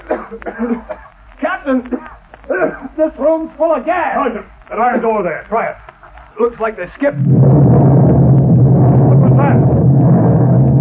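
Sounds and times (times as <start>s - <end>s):
speech: 0.3s - 5.8s, 6.4s - 8.1s
rumbling explosion near the water: 7.2s - 10.7s.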